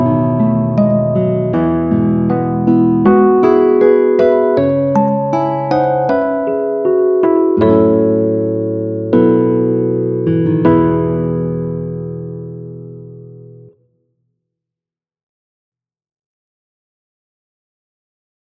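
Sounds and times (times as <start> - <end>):
healing music to relieve tiredness: 0.0 - 13.8.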